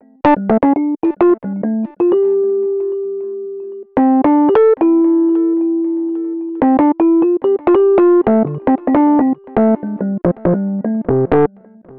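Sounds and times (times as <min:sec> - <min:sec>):
Rhodes electric piano solo in cinematic funk: 0:00.0 - 0:11.5.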